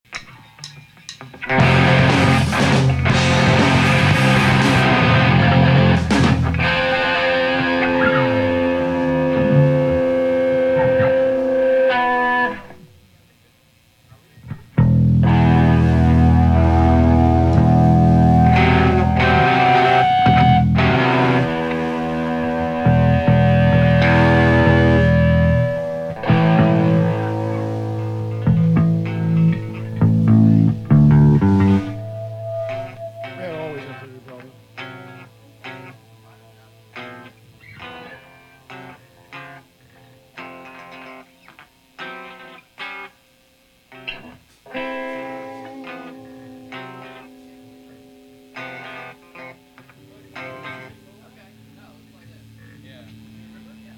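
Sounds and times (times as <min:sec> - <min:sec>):
instrument tuning: 0:01.5 - 0:12.9, 0:14.8 - 0:39.0, 0:44.7 - 0:51.8.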